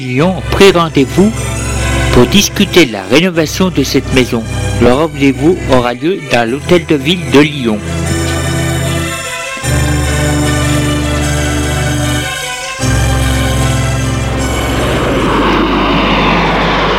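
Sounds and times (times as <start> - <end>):
speech: 0.0 - 1.6, 2.2 - 8.2
small private plane's engine droning: 0.0 - 16.9
rush of wind-like noise: 14.2 - 16.9.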